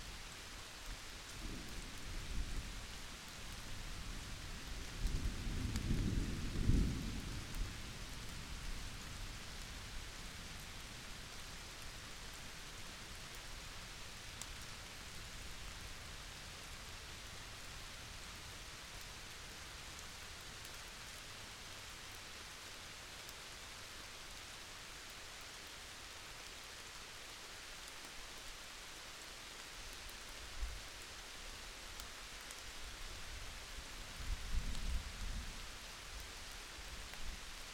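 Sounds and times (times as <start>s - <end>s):
summer thunderstorm rain under tree canopy: 0.0s - 37.7s.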